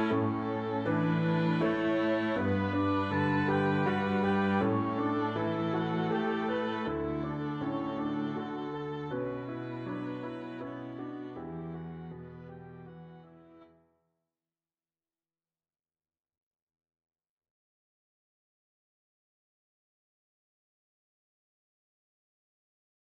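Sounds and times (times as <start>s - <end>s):
medium-low musical accompaniment: 0.0s - 13.7s.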